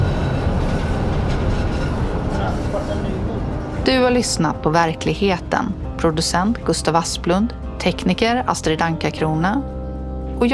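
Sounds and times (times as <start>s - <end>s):
tram cars running through turning loop: 0.0s - 9.6s
speech: 3.9s - 9.8s.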